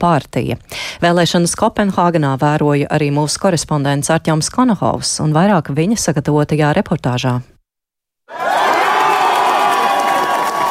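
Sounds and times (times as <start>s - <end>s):
speech: 0.0s - 7.5s
Moderates party members applauding and cheering: 8.3s - 10.6s.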